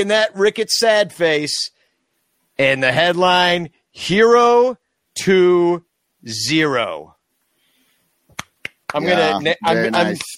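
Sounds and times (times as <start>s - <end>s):
speech: 0.0s - 1.8s, 2.6s - 7.2s, 8.9s - 10.3s
sarcastic hand clapping: 8.3s - 10.3s.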